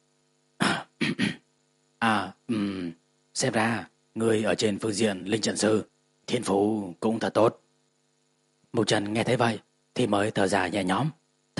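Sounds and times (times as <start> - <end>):
dry cough: 0.6 - 1.4, 2.5 - 2.9
speech: 2.0 - 7.6, 8.7 - 11.5.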